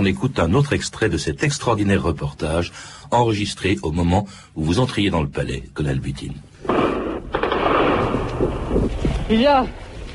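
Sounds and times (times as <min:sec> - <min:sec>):
speech: 0:00.0 - 0:06.5, 0:09.3 - 0:09.9
tanks firing on the presidential palace: 0:06.6 - 0:08.9.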